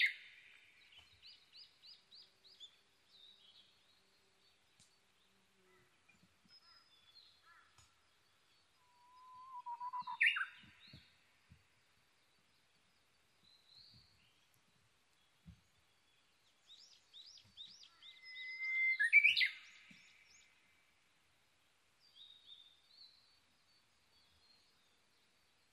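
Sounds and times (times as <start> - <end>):
Japanese bush warbler whistle phrase: 8.9 - 10.5, 18.3 - 19.6.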